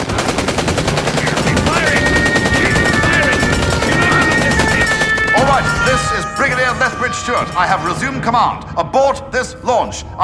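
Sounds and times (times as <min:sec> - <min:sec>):
machine-gun fire: 0:00.0 - 0:06.1
speech: 0:07.3 - 0:10.2.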